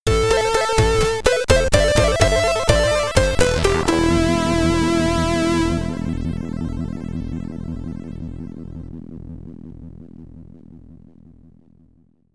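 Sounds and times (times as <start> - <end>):
SID chiptune game over jingle in stereo: 0.1 - 8.1.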